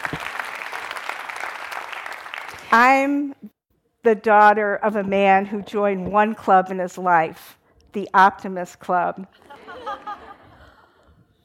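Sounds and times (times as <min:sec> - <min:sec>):
audience clapping at a speaking event: 0:00.0 - 0:02.8
speech: 0:02.7 - 0:09.6
laughter: 0:09.4 - 0:11.1.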